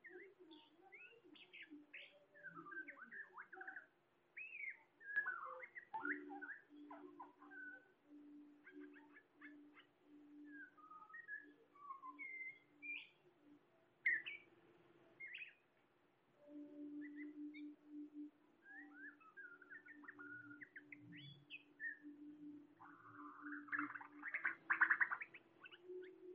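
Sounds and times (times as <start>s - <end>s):
birds singing together with warbled and whistled phrases: 0.0s - 14.5s, 15.1s - 15.7s, 16.4s - 26.3s.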